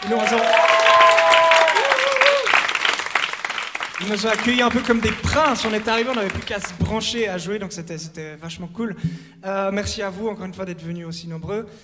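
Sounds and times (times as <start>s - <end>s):
speech: 0.0s - 0.8s, 4.0s - 11.8s
audience applause: 0.0s - 6.8s.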